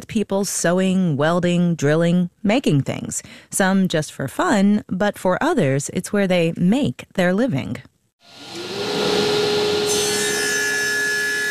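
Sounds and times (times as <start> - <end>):
speech: 0.1 - 8.7
wood being sawed in a workshop: 8.3 - 11.4.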